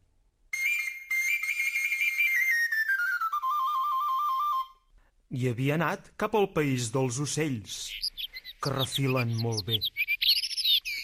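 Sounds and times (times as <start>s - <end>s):
flabiol Catalan pipe playing a melody: 0.6s - 4.9s
speech: 5.3s - 8.0s, 8.6s - 10.1s.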